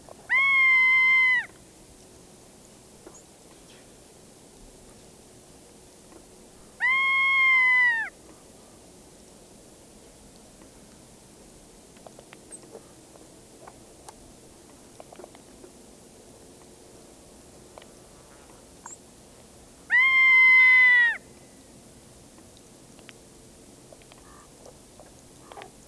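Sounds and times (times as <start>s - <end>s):
Ferruginous Hawk Buteo regalis calling: 0.3s - 1.5s, 6.8s - 8.1s, 19.9s - 21.2s.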